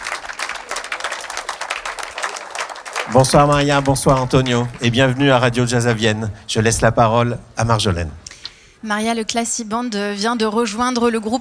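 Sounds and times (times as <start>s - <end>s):
audience applause for a big band conductor and a saxophonist at a jazz festival in the Théâtre Antique: 0.0s - 6.1s
speech: 3.1s - 8.2s, 8.8s - 11.3s.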